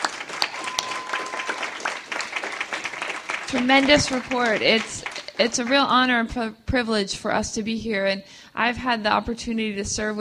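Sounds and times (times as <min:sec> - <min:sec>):
audience applause: 0:00.0 - 0:05.9
speech: 0:03.5 - 0:10.1.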